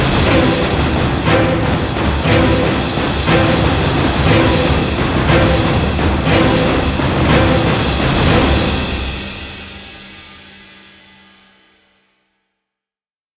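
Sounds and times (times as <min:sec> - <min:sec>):
epic violins: 0:00.0 - 0:10.1.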